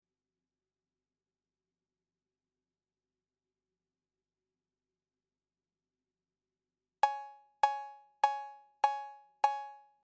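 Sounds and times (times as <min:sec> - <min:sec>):
cowbell: 0:07.0 - 0:09.9.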